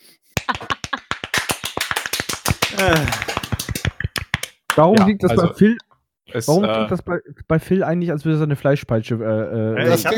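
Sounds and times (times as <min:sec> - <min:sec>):
hand clapping: 0:00.4 - 0:05.2
speech: 0:02.8 - 0:03.3, 0:04.8 - 0:10.1.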